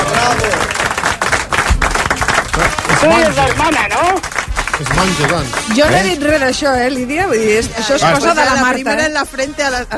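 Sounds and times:
audience applause at a live stage show: 0.0s - 6.3s
speech: 3.0s - 9.9s.

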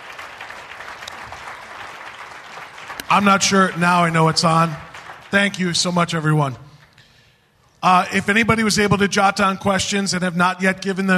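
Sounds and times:
audience applause: 0.0s - 6.3s
speech: 3.1s - 6.6s, 7.8s - 11.1s.

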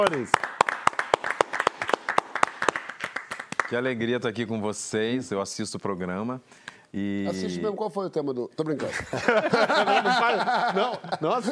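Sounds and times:
speech: 0.0s - 0.5s, 3.7s - 11.5s
studio audience applause: 0.0s - 3.9s
laughter: 8.8s - 11.5s.

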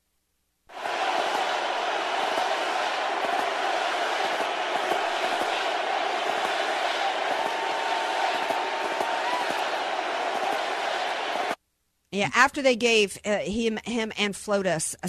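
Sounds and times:
crowd chanting at a rally: 0.7s - 11.6s
speech: 12.2s - 15.0s.

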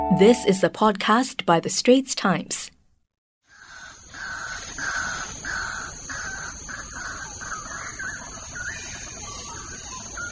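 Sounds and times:
speech: 0.2s - 2.7s
birds calling in a forest: 3.4s - 10.2s.

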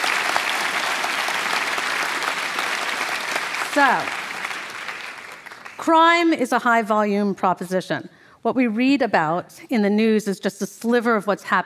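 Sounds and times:
audience applause: 0.0s - 5.8s
speech: 3.8s - 4.2s, 5.8s - 11.6s.

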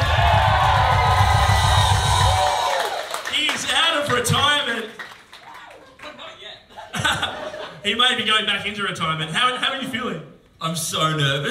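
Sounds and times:
live audience applauding and cheering with whoops and shouts: 0.0s - 6.2s
laughter: 5.6s - 7.8s
speech: 7.8s - 11.4s.

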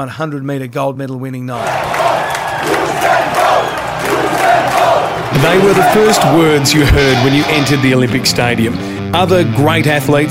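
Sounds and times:
speech: 0.0s - 10.2s
large stadium crowd cheering: 1.5s - 8.8s
whistles: 1.6s - 7.7s
people shouting: 1.6s - 8.1s.

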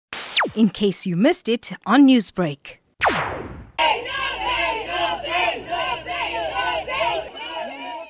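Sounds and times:
speech: 0.6s - 2.8s
angry crowd of protesters outside Verulam Magistrate's Court: 3.8s - 8.0s.

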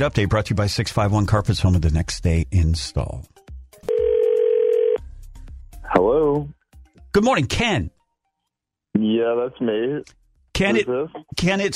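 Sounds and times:
speech: 0.0s - 3.4s, 6.0s - 8.0s, 9.0s - 11.7s
telephone ringing during outgoing call: 3.8s - 5.0s.

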